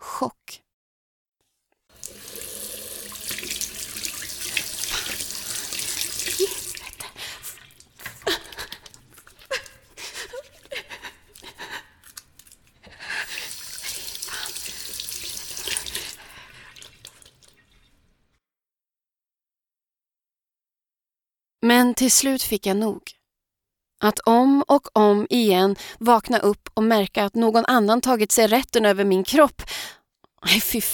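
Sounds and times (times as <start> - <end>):
speech: 0.2 - 0.6, 22.0 - 23.2, 24.0 - 30.9
tap water running into a sink: 1.9 - 9.1, 13.2 - 17.6
water splashing in a sink: 1.9 - 10.2, 13.2 - 17.8.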